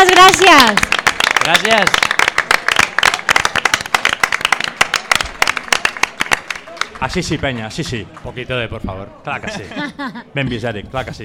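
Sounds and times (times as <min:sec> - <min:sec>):
small group clapping in an ovation: 0:00.0 - 0:08.3
speech: 0:00.4 - 0:02.1, 0:07.0 - 0:11.2
laughter: 0:09.4 - 0:10.7.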